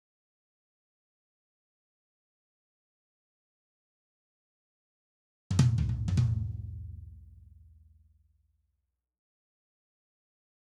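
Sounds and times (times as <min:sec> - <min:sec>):
tom drums: 0:05.5 - 0:07.0.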